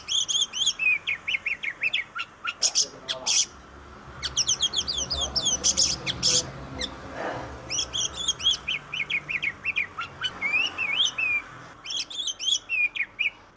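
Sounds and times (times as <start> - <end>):
Oriental magpie-robin singing tutor song in tembakan style: 0.0 - 7.0, 7.6 - 13.5.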